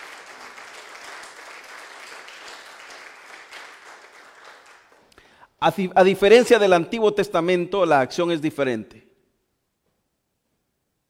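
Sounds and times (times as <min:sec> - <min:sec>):
audience applauding: 0:00.0 - 0:05.2
speech: 0:05.6 - 0:09.0.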